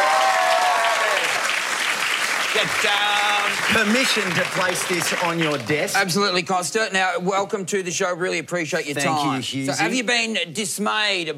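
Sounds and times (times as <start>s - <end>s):
audience applause welcoming Costa Georgiadis: 0.0s - 6.1s
speech: 2.6s - 11.3s.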